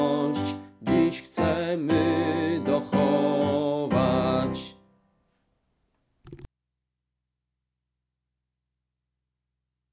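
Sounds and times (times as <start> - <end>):
person singing: 0.0 - 4.8.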